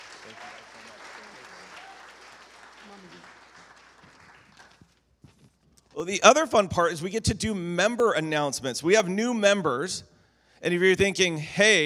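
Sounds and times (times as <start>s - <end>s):
audience applause: 0.0s - 4.9s
speech: 6.0s - 11.8s.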